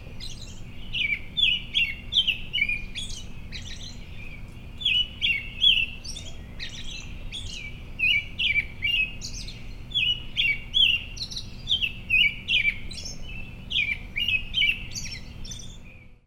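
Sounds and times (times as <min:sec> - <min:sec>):
American Robin: 0:00.0 - 0:16.2.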